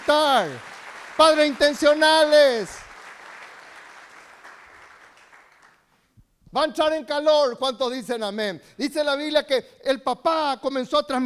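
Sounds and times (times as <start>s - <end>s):
audience applause: 0.0s - 5.8s
speech: 0.1s - 2.8s, 6.5s - 11.2s.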